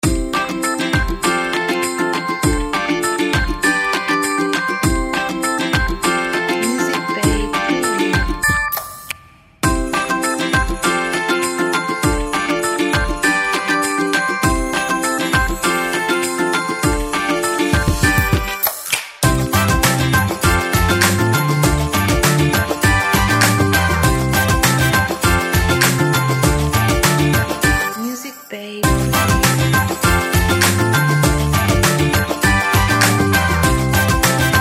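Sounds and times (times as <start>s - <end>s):
funky show intro music: 0.0s - 8.6s, 9.6s - 27.9s, 28.8s - 34.5s.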